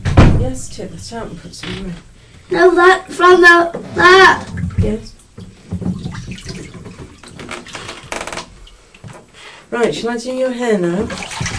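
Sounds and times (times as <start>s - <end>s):
speech: 0.4s - 6.0s, 9.7s - 11.4s
cold water running from a tap into a bath: 2.5s - 9.9s, 10.8s - 11.5s.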